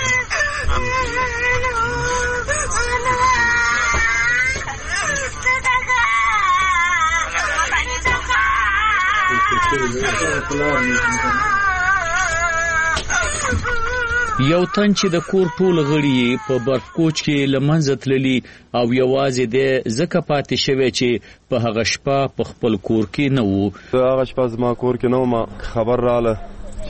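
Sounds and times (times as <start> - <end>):
young girl crying loudly calling for her parents on a bed: 0.0 - 17.6
speech: 9.7 - 11.6, 14.4 - 26.8.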